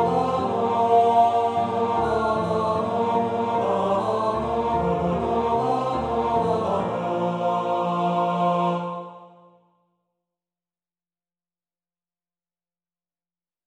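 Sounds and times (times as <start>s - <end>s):
tenor singing a carol: 0.0s - 9.4s.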